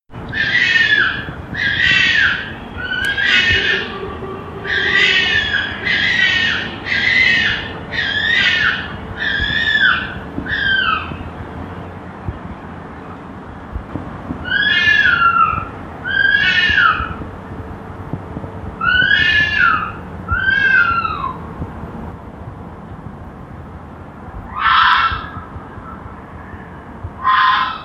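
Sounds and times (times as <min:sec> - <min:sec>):
red foxes fighting with whining screams and harsh chattering squalls: 0:00.2 - 0:11.3, 0:14.4 - 0:17.2, 0:18.8 - 0:21.5, 0:24.5 - 0:27.8.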